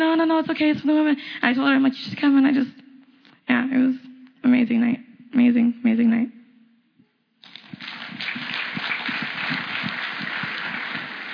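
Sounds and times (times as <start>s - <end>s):
speech: 0.0s - 2.8s, 3.5s - 6.4s
crowd applause: 7.4s - 11.3s.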